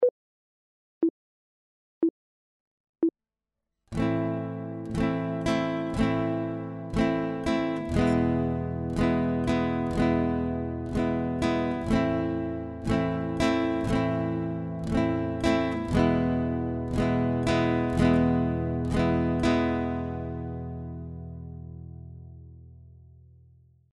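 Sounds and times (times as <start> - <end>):
guitar chord: 4.0 - 22.8.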